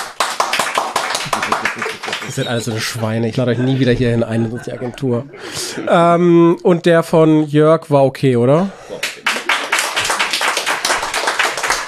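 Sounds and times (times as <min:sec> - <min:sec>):
hand clapping: 0:00.0 - 0:02.5, 0:09.0 - 0:11.8
laughter: 0:01.2 - 0:06.1, 0:08.8 - 0:10.4
speech: 0:02.2 - 0:08.8.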